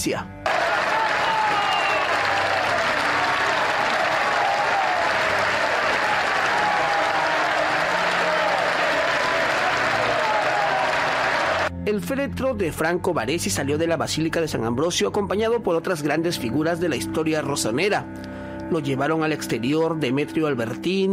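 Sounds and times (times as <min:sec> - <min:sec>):
speech: 0:00.0 - 0:00.4, 0:11.9 - 0:21.1
long sustained applause of a crowd: 0:00.4 - 0:11.7.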